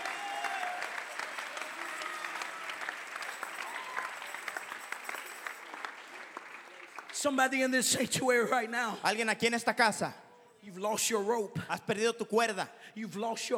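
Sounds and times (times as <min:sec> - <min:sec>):
audience clapping: 0:00.0 - 0:08.6
speech: 0:07.2 - 0:13.5.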